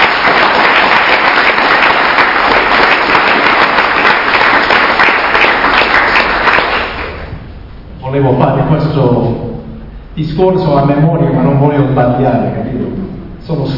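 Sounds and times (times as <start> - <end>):
audience applause: 0.0 - 7.3
speech: 8.2 - 9.4, 10.2 - 13.7.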